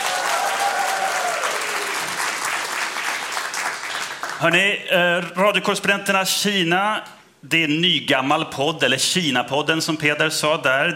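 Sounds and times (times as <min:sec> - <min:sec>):
audience applause: 0:00.0 - 0:04.4
speech: 0:04.4 - 0:10.9.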